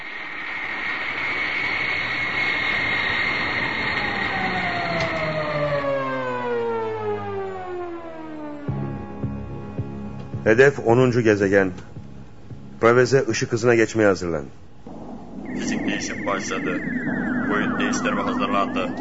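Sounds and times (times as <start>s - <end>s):
spaceship engines firing for takeoff: 0.1s - 8.8s, 14.9s - 18.9s
speech: 10.5s - 11.9s, 12.8s - 14.6s, 16.0s - 18.9s.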